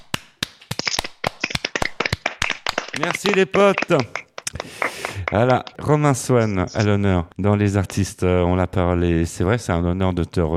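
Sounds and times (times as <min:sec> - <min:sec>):
hand claps from a few people in a radio studio: 0:00.0 - 0:06.9
speech: 0:03.0 - 0:10.5.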